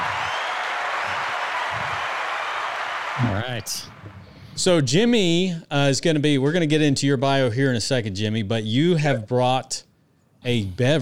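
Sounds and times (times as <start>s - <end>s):
audience applause: 0.0s - 4.2s
speech: 3.2s - 11.0s.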